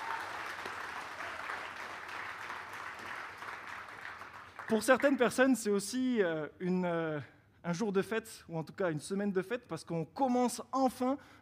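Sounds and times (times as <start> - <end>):
audience applause: 0.0 - 5.1
speech: 4.7 - 11.4.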